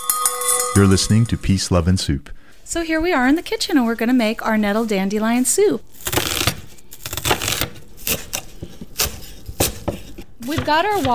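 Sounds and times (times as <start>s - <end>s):
speech: 0.8s - 6.2s, 10.6s - 11.1s
knife chopping an onion on a cutting board: 6.1s - 11.1s.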